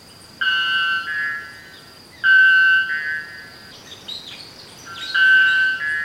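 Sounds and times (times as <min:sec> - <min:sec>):
bellbird call: 0:00.4 - 0:01.6, 0:02.2 - 0:03.5, 0:04.9 - 0:06.0.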